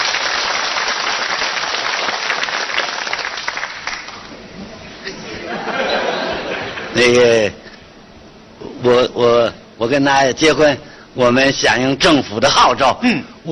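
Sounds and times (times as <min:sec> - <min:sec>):
audience applauding at a celebration party: 0:00.0 - 0:04.3
laughter: 0:05.0 - 0:07.0
speech: 0:07.0 - 0:07.6, 0:08.8 - 0:13.5.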